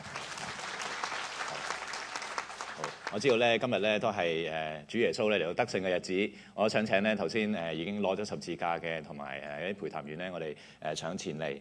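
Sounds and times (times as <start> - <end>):
audience applause: 0.0 - 3.5
speech: 3.1 - 11.5.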